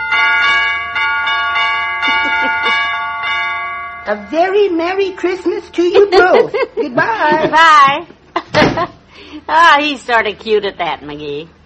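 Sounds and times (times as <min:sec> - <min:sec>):
broken doorbell chimes ringing: 0:00.0 - 0:06.2
speech: 0:04.1 - 0:11.6
laughter: 0:05.8 - 0:09.0.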